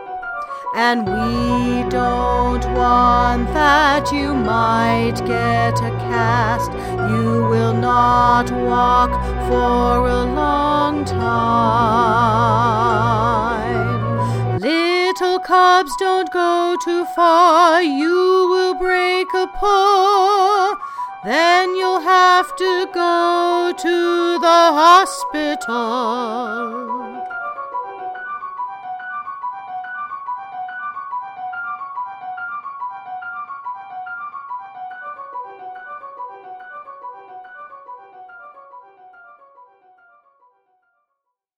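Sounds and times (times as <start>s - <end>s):
song vocals: 0.6s - 27.6s.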